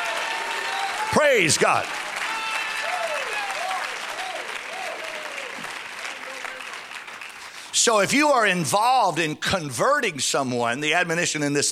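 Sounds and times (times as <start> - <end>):
audience clapping hands: 0.0 - 8.6
speech: 1.1 - 2.0, 7.8 - 11.6.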